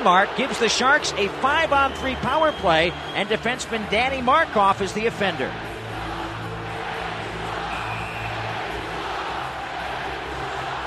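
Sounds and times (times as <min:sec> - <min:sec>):
speech: 0:00.0 - 0:05.7
hockey arena crowd reacting to penalty: 0:00.0 - 0:10.8.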